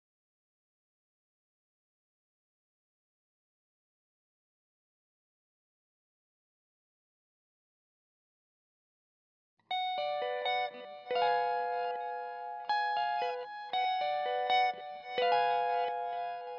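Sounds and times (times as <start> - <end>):
electric guitar: 9.7 - 16.5.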